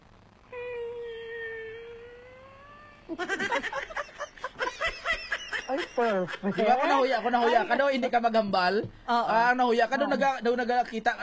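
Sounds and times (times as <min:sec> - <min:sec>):
person imitating an embarrassed cat meow: 0:00.5 - 0:03.1
speech: 0:03.1 - 0:03.9, 0:06.0 - 0:11.2
bursts of laughter: 0:03.1 - 0:07.7.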